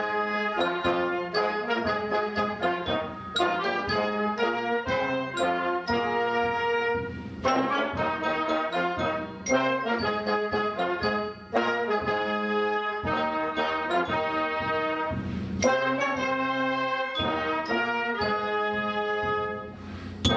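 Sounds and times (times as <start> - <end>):
instrumental cheering song: 0.0 - 20.3.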